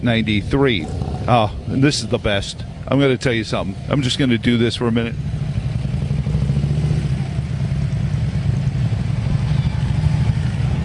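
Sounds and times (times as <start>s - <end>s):
speech: 0.0s - 5.4s
group of motorcycles arriving, engines revving: 0.0s - 10.8s.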